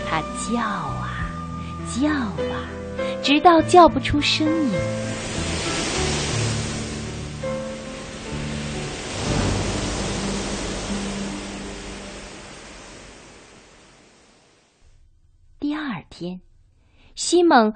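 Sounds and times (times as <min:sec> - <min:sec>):
speech: 0:00.2 - 0:01.1, 0:01.8 - 0:05.6, 0:16.2 - 0:16.5, 0:17.2 - 0:17.7
ocean waves: 0:04.1 - 0:14.8.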